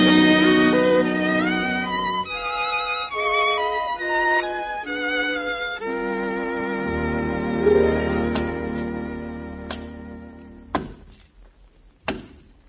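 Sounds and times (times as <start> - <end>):
steady sustained musical drone: 0.0 - 10.7
wood chopping: 10.7 - 11.1.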